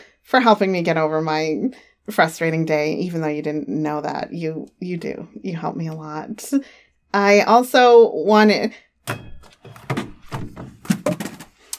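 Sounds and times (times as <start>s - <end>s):
speech: 0.3s - 10.7s
phone clattering on floor: 9.1s - 11.6s.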